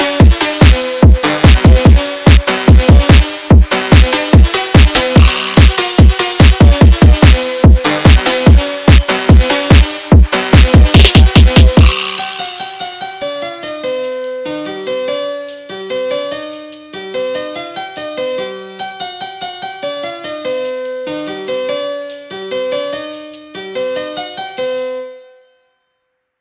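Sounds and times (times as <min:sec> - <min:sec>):
sped up classical phonk music: 0:00.0 - 0:13.1.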